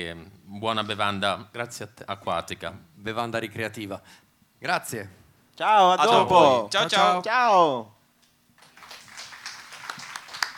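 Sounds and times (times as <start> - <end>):
speech: 0.0 - 8.0
audience applause: 8.6 - 10.5.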